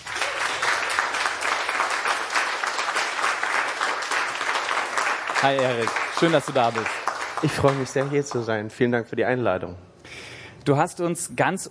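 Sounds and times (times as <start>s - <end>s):
audience applause: 0.0s - 8.6s
speech: 5.4s - 11.6s.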